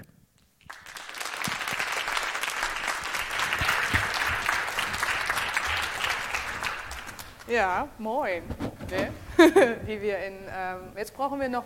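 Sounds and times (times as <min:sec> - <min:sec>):
warm applause for speakers on stage: 0:00.6 - 0:07.6
speech: 0:07.5 - 0:11.6.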